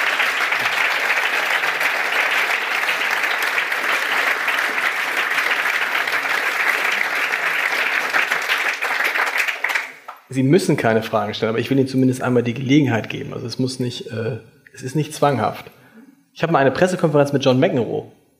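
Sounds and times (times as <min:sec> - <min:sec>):
audience applause: 0:00.0 - 0:10.3
speech: 0:10.3 - 0:15.8, 0:16.4 - 0:18.2.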